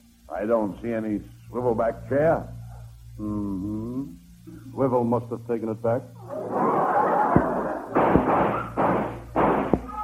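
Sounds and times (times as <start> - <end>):
speech: 0.4 - 2.6, 3.2 - 6.8
laughter: 6.3 - 8.0
gunshot outside the door: 7.4 - 9.9.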